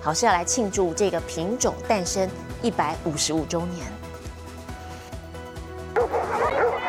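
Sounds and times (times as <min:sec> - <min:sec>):
speech: 0:00.0 - 0:04.1
golden retrievers barking and yipping: 0:05.9 - 0:06.8
crowd murmur: 0:06.0 - 0:06.8.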